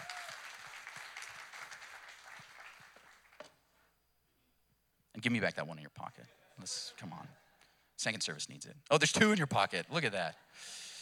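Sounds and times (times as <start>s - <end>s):
audience applause: 0.0s - 3.4s
speech: 5.2s - 10.8s.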